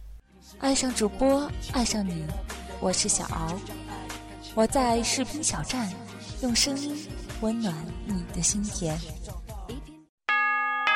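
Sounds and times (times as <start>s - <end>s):
speech: 0.4s - 3.8s, 4.5s - 9.4s
New Year bell chime: 10.3s - 10.9s.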